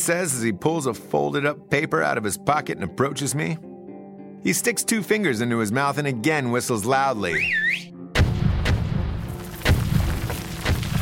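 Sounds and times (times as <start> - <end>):
speech: 0.0 - 3.7, 4.4 - 7.9
dynamite explosions inside mine shafts: 8.2 - 10.9.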